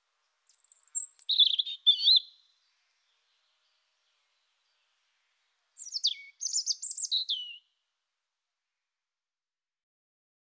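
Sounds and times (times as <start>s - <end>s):
European robin singing high warbled notes and fast high trills: 0.5s - 5.0s, 5.8s - 7.7s.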